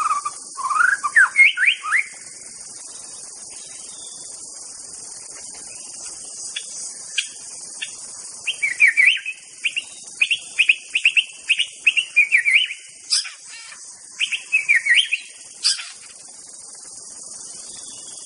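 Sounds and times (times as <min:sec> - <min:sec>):
White-rumped Shama song in forest: 0:00.0 - 0:02.3, 0:06.6 - 0:16.1.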